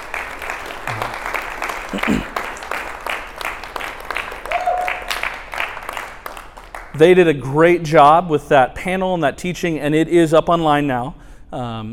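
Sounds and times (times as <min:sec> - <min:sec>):
audience applause: 0:00.0 - 0:06.9
speech: 0:01.9 - 0:02.3, 0:07.0 - 0:11.9
brief cheers from the crowd: 0:04.5 - 0:05.2.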